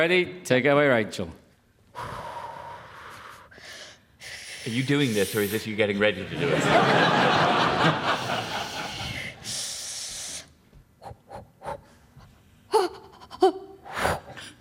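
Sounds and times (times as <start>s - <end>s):
speech: 0.0s - 1.4s, 4.6s - 8.0s
person gasping imitating a cold water plunge: 1.9s - 5.6s, 8.4s - 14.5s
hissing breath: 1.9s - 5.7s, 8.1s - 12.0s
laughter: 6.2s - 9.4s.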